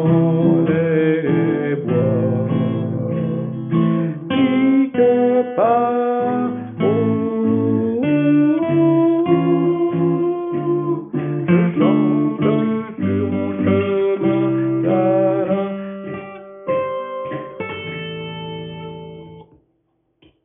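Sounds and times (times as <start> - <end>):
sopranos singing: 0.0 - 16.3.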